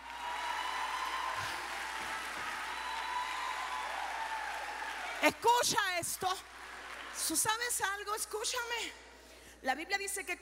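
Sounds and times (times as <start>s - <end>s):
audience applause: 0.0s - 5.3s, 6.4s - 7.3s
speech: 5.2s - 6.6s, 7.2s - 10.4s.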